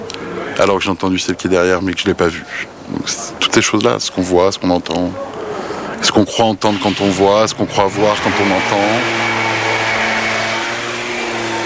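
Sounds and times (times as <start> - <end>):
speech: 0.6 - 5.4, 6.1 - 9.4
scooter engine passing by: 6.7 - 11.6.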